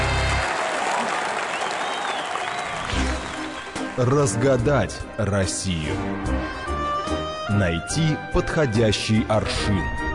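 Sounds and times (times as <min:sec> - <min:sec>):
applause: 0:00.0 - 0:04.4
speech: 0:04.0 - 0:06.8, 0:07.5 - 0:10.0.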